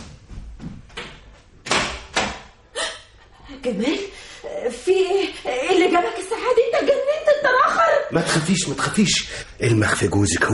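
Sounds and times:
door being opened: 1.0 - 2.5
speech: 3.6 - 7.0, 8.1 - 10.5.

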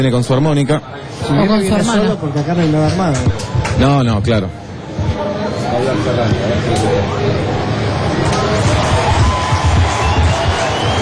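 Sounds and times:
speech: 0.0 - 7.5
stadium crowd applauding team lineup announcement: 7.9 - 11.0.

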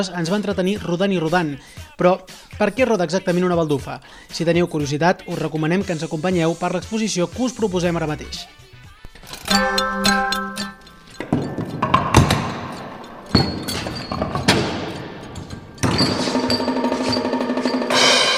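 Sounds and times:
speech: 0.0 - 8.6, 9.2 - 10.4
Rube Goldberg machine chain of contraptions: 7.4 - 18.3.

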